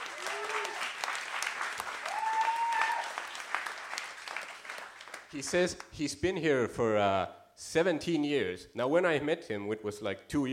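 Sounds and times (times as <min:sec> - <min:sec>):
audience applause: 0:00.0 - 0:05.7
speech: 0:05.3 - 0:10.5.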